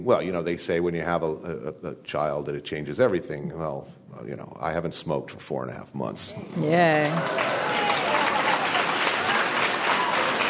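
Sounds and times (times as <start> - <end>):
speech: 0.0 - 7.8
audience clapping: 6.8 - 10.4.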